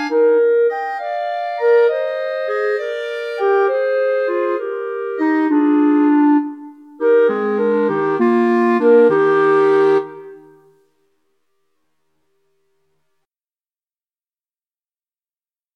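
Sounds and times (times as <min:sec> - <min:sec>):
clarinet trio playing a pastorale: 0:00.0 - 0:10.8.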